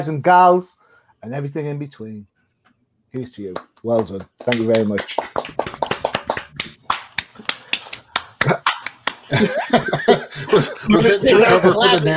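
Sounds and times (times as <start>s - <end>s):
speech: 0.0s - 2.3s, 3.1s - 5.6s, 9.3s - 12.1s
hand slaps swatting at gnats: 3.5s - 9.5s
people laughing and chattering: 9.4s - 12.1s.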